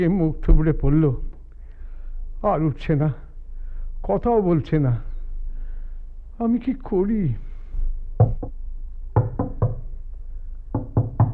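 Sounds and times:
speech: 0.0 - 1.3, 2.4 - 3.2, 4.0 - 5.1, 6.4 - 7.5
knocking on a door: 8.2 - 8.6, 9.2 - 9.9, 10.7 - 11.3.

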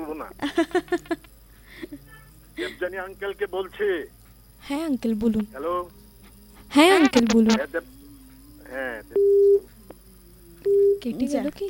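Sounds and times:
laughter: 0.0 - 3.0, 6.6 - 8.0
speech: 0.2 - 1.0, 2.9 - 6.0, 6.7 - 7.9, 8.7 - 9.7, 10.6 - 11.6
phone line tone beeps after a call-in is cut off: 9.1 - 9.7, 10.7 - 11.0.

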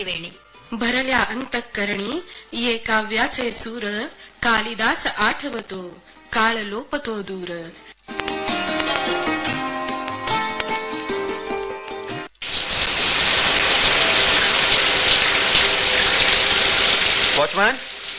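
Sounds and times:
speech: 0.0 - 8.3, 17.4 - 17.8
music: 0.0 - 12.4, 13.4 - 17.4
water rushing from an overflowing tank: 12.4 - 18.1.

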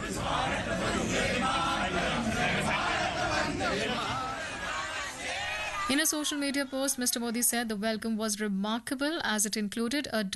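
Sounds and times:
crowd chanting at a welcome event: 0.0 - 7.2
speech: 5.9 - 10.3.

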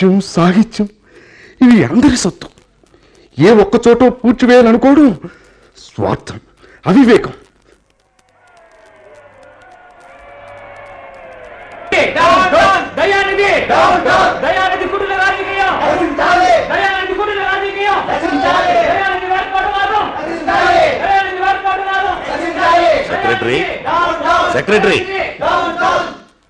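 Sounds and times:
speech: 0.0 - 1.0, 1.6 - 2.6, 3.4 - 7.4, 13.4 - 15.0, 22.6 - 26.4
agitated crowd shouting and chanting outside: 8.0 - 26.4.

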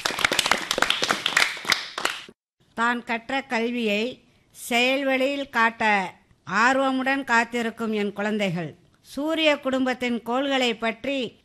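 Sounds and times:
audience clapping at a school program: 0.0 - 2.4
speech: 2.8 - 11.4.

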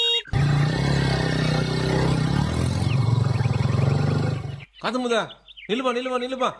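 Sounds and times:
scooter arriving: 0.3 - 4.7
speech: 4.8 - 6.5.

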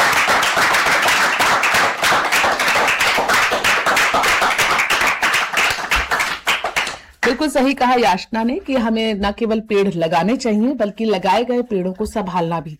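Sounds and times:
children clapping: 0.0 - 7.4
speech: 7.4 - 12.7.

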